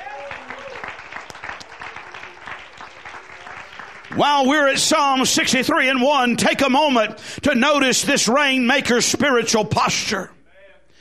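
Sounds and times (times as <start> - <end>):
audience clapping: 0.0 - 5.5
speech: 4.2 - 10.4.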